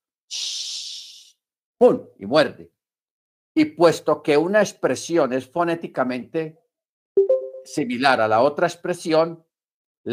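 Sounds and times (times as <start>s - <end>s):
voice imitating a snake's hiss: 0.3s - 1.4s
speech: 1.8s - 2.8s, 3.6s - 6.6s, 7.6s - 10.1s.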